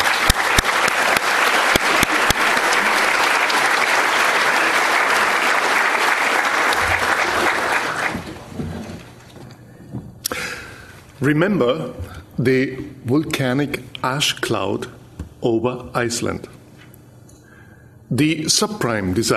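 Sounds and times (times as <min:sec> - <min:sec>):
audience applause welcoming Professor Gigerenzer to a talk on risk: 0:00.0 - 0:08.5
speech: 0:11.2 - 0:16.6, 0:18.1 - 0:19.3.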